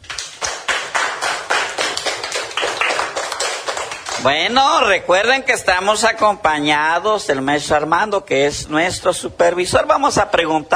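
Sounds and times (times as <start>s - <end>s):
children clapping: 0.0s - 4.4s
speech: 4.2s - 10.7s.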